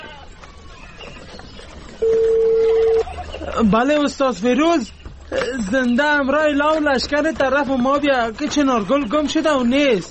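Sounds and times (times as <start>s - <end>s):
telephone dialing tones: 2.0s - 3.3s
speech: 3.6s - 10.0s.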